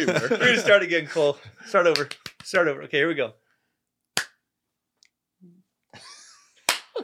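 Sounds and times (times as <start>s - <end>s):
laughter: 0.0s - 1.4s, 6.0s - 7.0s
speech: 0.0s - 3.4s
single sharp hand clap: 1.9s - 2.6s, 4.2s - 4.4s, 6.6s - 7.0s.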